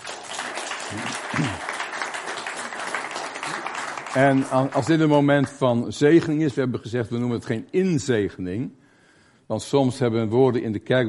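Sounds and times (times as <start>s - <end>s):
audience applause: 0.0s - 5.5s
speech: 0.9s - 1.7s, 4.2s - 8.8s, 9.5s - 11.0s.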